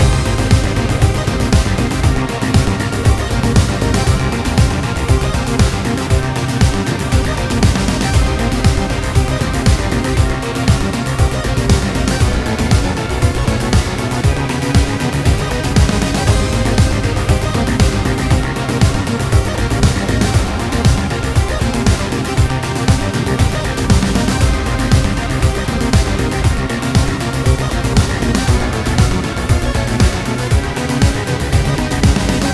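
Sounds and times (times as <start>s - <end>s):
background music: 0.0s - 32.5s.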